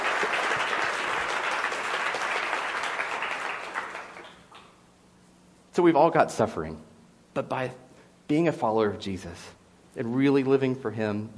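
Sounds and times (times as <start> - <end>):
people clapping: 0.0 - 4.7
speech: 5.8 - 11.3.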